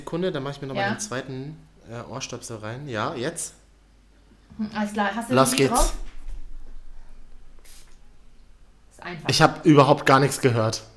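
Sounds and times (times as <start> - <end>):
speech: 0.0 - 3.6, 4.5 - 6.0, 9.1 - 10.9
low steady hum: 0.0 - 10.9
asthma inhaler spray puff: 7.6 - 8.0.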